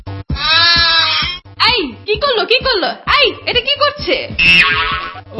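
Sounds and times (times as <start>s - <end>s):
goat bleating while eating mangoes: 0.4s - 1.4s, 4.4s - 5.2s
people talking: 1.6s - 4.4s.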